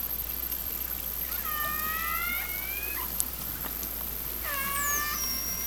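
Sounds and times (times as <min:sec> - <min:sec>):
low hum: 0:00.1 - 0:05.6
killer whale calls: 0:01.1 - 0:05.6.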